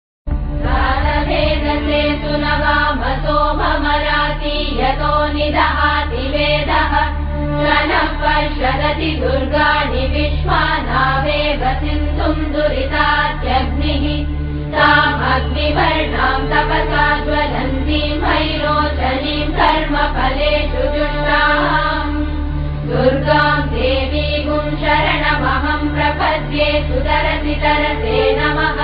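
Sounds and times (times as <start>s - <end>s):
devotional chanting: 0.5s - 28.8s.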